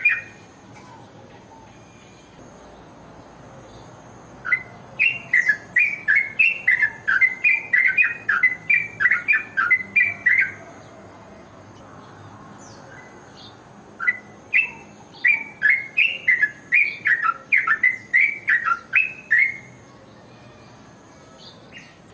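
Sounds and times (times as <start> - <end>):
bird ringing chirps: 0.0 - 0.9, 4.4 - 10.6, 14.0 - 19.8.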